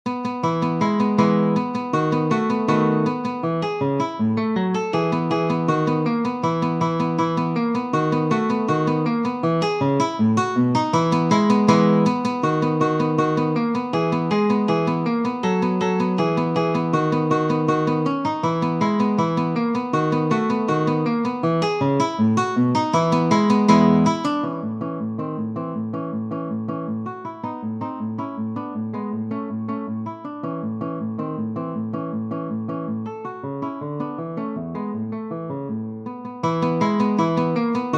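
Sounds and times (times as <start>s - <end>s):
guitar andante: 0.1s - 37.9s.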